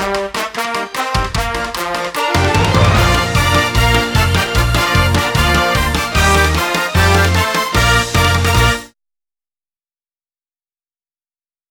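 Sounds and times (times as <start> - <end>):
march music with hits: 0.0 - 8.9.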